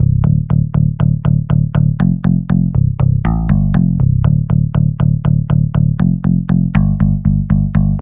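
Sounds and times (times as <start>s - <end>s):
bass: 0.0s - 8.0s.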